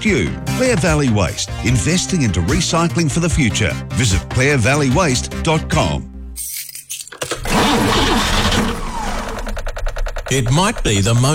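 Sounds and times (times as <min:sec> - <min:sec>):
speech: 0:00.0 - 0:06.5, 0:07.6 - 0:08.4, 0:10.3 - 0:11.3
car engine with a dead battery cranking: 0:07.1 - 0:11.3.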